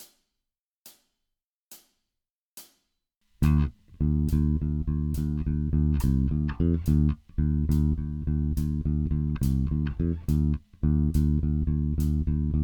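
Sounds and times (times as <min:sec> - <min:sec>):
heavy rock blues bass: 0:03.4 - 0:12.6.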